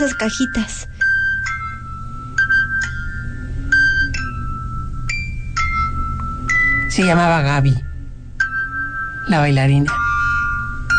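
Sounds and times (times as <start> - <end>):
speech: 0.0 - 1.0, 7.0 - 7.9, 9.3 - 10.0
music box without its dancer figurine playing its melody: 0.0 - 10.9.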